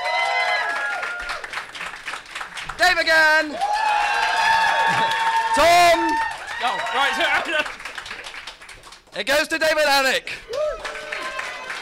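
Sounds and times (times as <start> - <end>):
audience whooping and shouting for a contestant: 0.0 - 1.5, 3.5 - 7.6, 10.4 - 11.8
audience clapping: 0.0 - 11.8
speech: 2.8 - 3.8, 4.9 - 7.8, 9.2 - 10.4.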